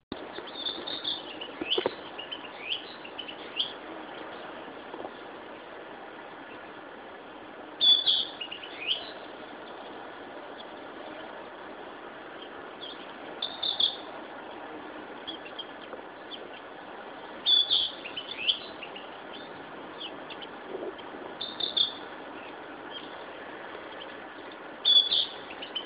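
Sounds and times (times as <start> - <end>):
background hiss: 0.1 - 25.8
Narcissus flycatcher whistled song: 0.5 - 3.8, 7.8 - 9.2, 12.8 - 14.0, 17.4 - 20.5, 21.4 - 22.0, 24.8 - 25.8.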